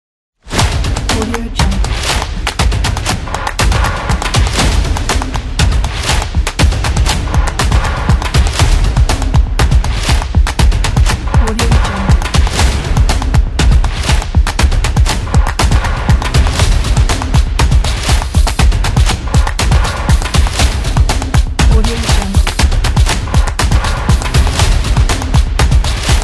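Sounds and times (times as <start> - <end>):
industrial stomping: 0.5 - 26.2.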